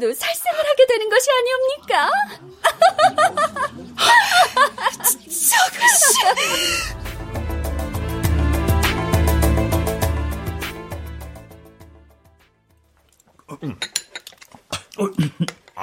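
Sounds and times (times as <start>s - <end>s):
speech: 0.0s - 3.4s
laughter: 2.3s - 7.0s
music: 6.2s - 12.9s
utensils clinking against bowls while eating hastily: 13.7s - 14.5s.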